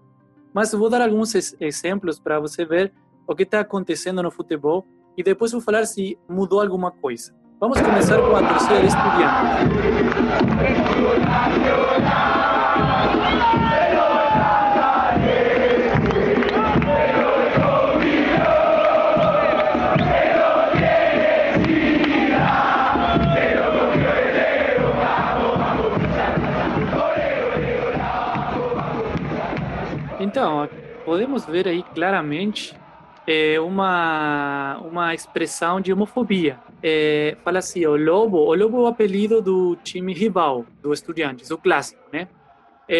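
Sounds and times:
speech: 0.5s - 12.4s, 30.4s - 42.9s
large crowd of football fans chanting in a stadium: 7.8s - 33.8s, 34.8s - 37.2s, 41.7s - 42.9s
dense wash of crowd noise: 7.8s - 42.9s.

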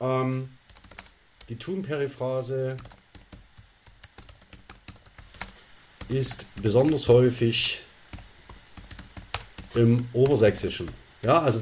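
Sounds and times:
computer keyboard typing a chat message: 0.7s - 1.5s, 2.7s - 7.4s, 8.1s - 11.6s
speech: 1.5s - 3.0s, 6.1s - 7.8s, 9.8s - 11.6s.

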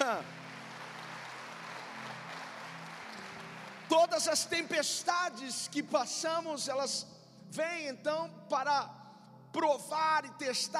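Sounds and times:
audience applauding: 0.0s - 5.0s
speech: 3.9s - 10.7s.

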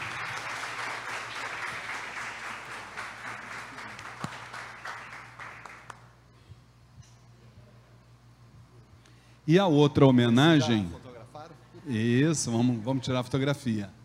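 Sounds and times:
audience applause: 0.0s - 6.1s
speech: 9.5s - 11.0s, 11.9s - 14.0s.

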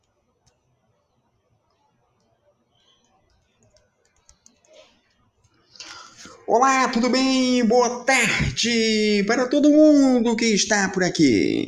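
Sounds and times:
typing a chat greeting on a computer keyboard: 2.2s - 4.8s
speech: 6.5s - 11.6s.

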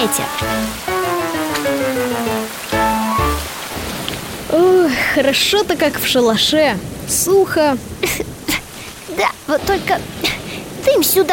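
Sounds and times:
speech: 0.0s - 1.0s, 4.5s - 8.3s, 9.2s - 11.3s
heavy rain pouring: 0.0s - 11.3s.

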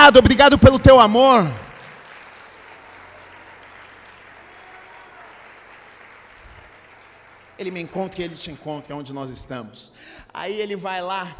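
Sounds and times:
audience applause: 0.0s - 8.4s
speech: 0.1s - 1.6s, 7.6s - 11.3s.

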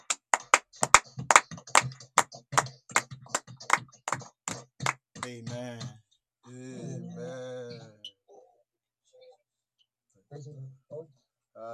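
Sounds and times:
audience clapping: 0.0s - 5.7s
speech: 5.3s - 6.7s.

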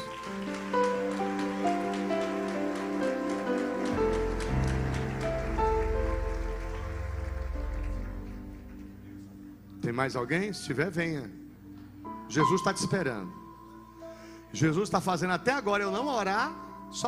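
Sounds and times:
church audience applauding: 0.0s - 9.2s
speech: 9.9s - 11.4s, 12.3s - 13.4s, 14.5s - 17.0s.

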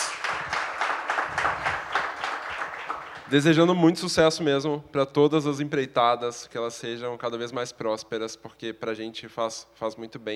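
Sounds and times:
audience applause: 0.0s - 3.7s
speech: 3.3s - 10.3s.

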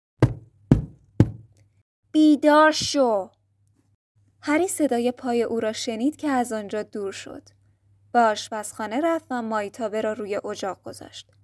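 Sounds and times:
firm knocking on a door: 0.2s - 1.5s
speech: 2.1s - 3.4s, 4.4s - 11.4s.

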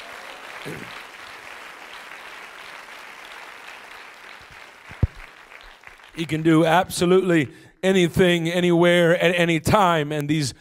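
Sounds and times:
audience clapping hands: 0.0s - 6.9s
speech: 0.6s - 1.0s, 6.2s - 10.5s.

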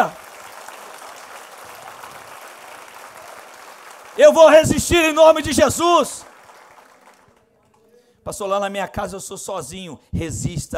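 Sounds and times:
audience applause: 0.0s - 7.5s
speech: 4.2s - 6.3s, 8.2s - 10.7s.

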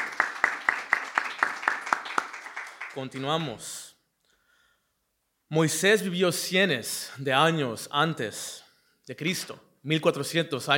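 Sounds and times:
church congregation clapping hands in unison: 0.0s - 3.7s
speech: 3.0s - 3.9s, 5.5s - 10.7s.

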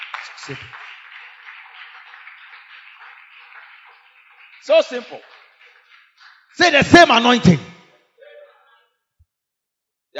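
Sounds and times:
audience clapping hands: 0.0s - 7.8s
speech: 0.4s - 0.8s, 4.6s - 5.3s, 6.6s - 7.7s.

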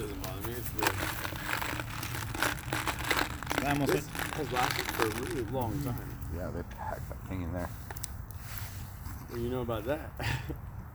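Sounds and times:
M&M candies crunching: 0.0s - 6.0s
speech: 3.6s - 7.8s, 9.3s - 10.7s.

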